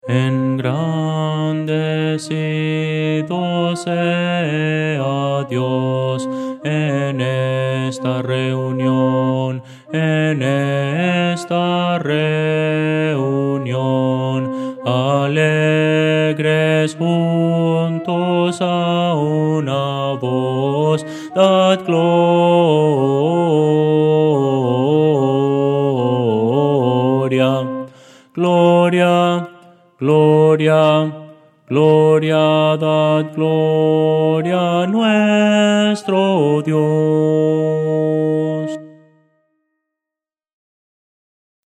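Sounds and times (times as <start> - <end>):
contralto voice: 0.0 - 39.1.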